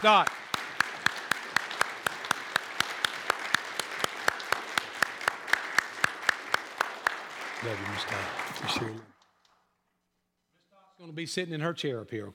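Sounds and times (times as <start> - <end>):
speech: 0.0 - 0.4, 7.6 - 9.1, 11.0 - 12.3
crowd applauding: 0.0 - 9.4.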